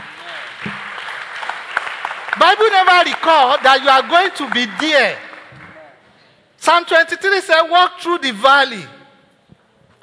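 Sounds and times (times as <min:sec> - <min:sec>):
audience clapping: 0:00.0 - 0:06.0
speech: 0:02.4 - 0:05.2, 0:06.6 - 0:09.0.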